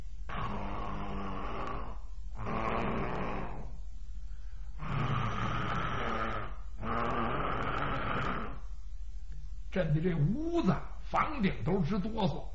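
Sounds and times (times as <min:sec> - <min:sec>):
storyteller imitating loud snoring: 0:00.3 - 0:03.8, 0:04.8 - 0:08.6
speech: 0:09.8 - 0:12.5.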